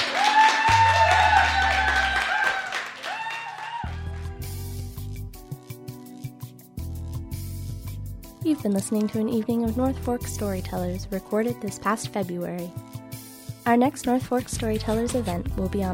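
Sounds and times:
audience applause: 0.0s - 4.4s
speech: 8.6s - 12.9s, 13.7s - 15.9s.

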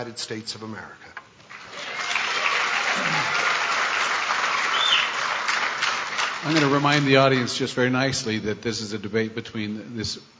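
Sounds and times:
speech: 0.0s - 1.2s, 3.0s - 3.4s, 6.4s - 10.3s
crowd clapping: 1.5s - 7.4s.

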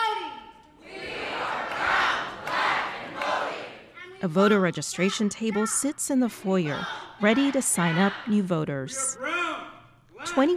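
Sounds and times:
crowd chanting: 0.8s - 4.2s, 6.2s - 9.2s
speech: 4.2s - 9.5s, 10.2s - 10.5s.

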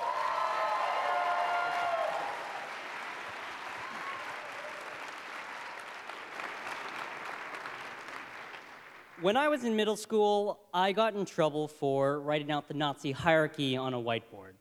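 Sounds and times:
faint whoops: 0.0s - 2.8s, 3.7s - 5.0s
audience applause welcoming a speaker: 0.0s - 9.2s
speech: 9.2s - 14.6s.

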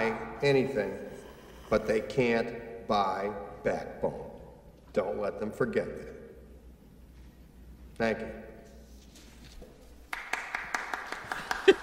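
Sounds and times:
speech: 0.0s - 4.3s, 5.0s - 6.2s, 8.0s - 8.5s
one person clapping hands: 10.1s - 11.8s.

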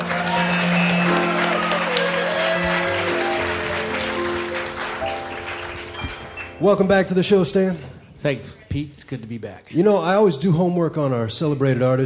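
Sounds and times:
audience applause greeting a special guest trumpet player: 0.0s - 7.2s
sustained musical tones: 0.0s - 7.3s
speech: 6.6s - 12.0s.

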